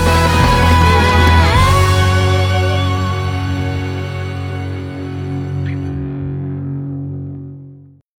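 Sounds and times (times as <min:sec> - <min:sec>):
jazz music: 0:00.0 - 0:06.5.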